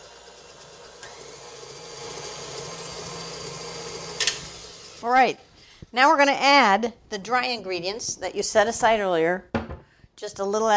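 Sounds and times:
electric mixer whirring through chocolate revel bar batter: 0.0s - 5.2s
speech: 5.0s - 9.5s, 10.2s - 10.7s.

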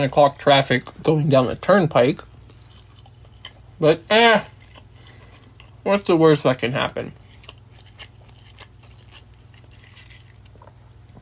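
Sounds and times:
speech: 0.0s - 2.3s, 3.8s - 4.5s, 5.8s - 7.2s
person chewing fried rice: 2.1s - 5.9s, 6.9s - 11.2s.

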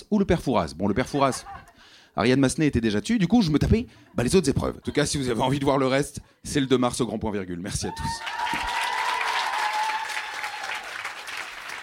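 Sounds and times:
speech: 0.1s - 8.8s
laughter: 0.8s - 1.8s
audience applause: 8.0s - 11.8s.

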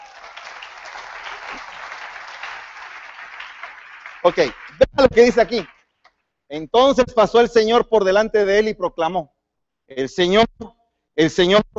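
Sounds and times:
audience applause: 0.0s - 5.8s
speech: 4.2s - 5.7s, 6.5s - 9.3s, 9.9s - 11.7s.

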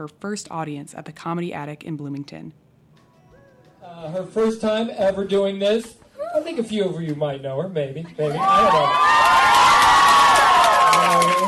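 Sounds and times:
speech: 0.0s - 2.6s, 3.8s - 9.4s, 11.0s - 11.4s
crowd cheering and whooping: 8.2s - 11.4s
scattered applause: 8.5s - 11.4s.

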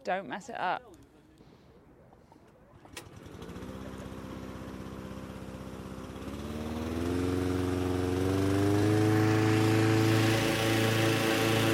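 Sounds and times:
speech: 0.0s - 1.0s
small petrol engine driving a big fan inflating a hot air balloon: 2.8s - 11.7s.

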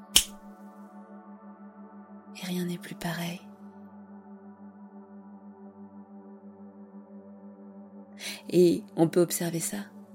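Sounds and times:
finger snap: 0.0s - 0.5s
speech: 2.4s - 3.5s, 8.5s - 10.0s.

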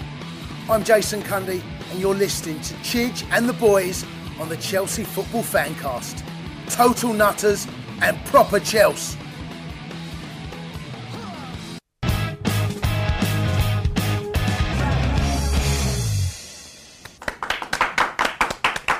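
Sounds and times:
loud music: 0.0s - 16.6s
speech: 0.7s - 9.2s
people clapping: 17.0s - 18.9s.

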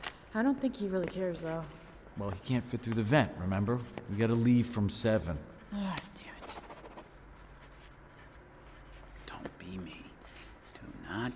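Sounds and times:
speech: 0.4s - 6.1s
pen scratching as names are written on paper: 6.2s - 8.3s.

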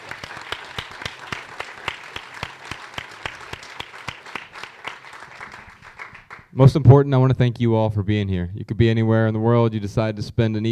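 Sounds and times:
audience applause: 0.0s - 6.5s
speech: 6.6s - 10.6s.

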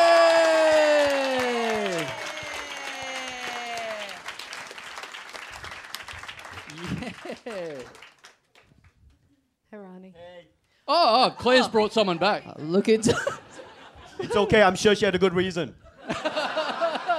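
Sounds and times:
people whooping: 0.0s - 4.5s, 6.6s - 7.9s
live comedy show audience applauding: 0.0s - 9.0s
laughter: 6.6s - 8.0s, 11.1s - 14.7s, 15.9s - 17.1s
speech: 7.4s - 8.1s, 10.9s - 13.4s, 14.2s - 16.2s.

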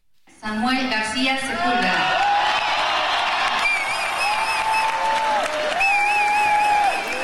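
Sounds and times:
speech: 0.4s - 2.2s
crowd applauding: 2.0s - 7.2s.

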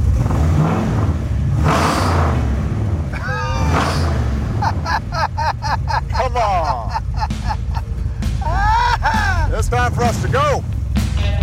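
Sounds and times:
engine revving as throttle is given: 0.0s - 11.4s
whining tone: 3.1s - 5.3s
laughter: 3.1s - 9.7s.

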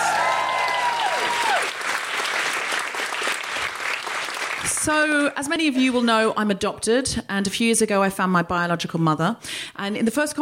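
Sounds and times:
audience applause at a live comedy talk show: 0.0s - 5.0s
speech: 4.8s - 10.3s.

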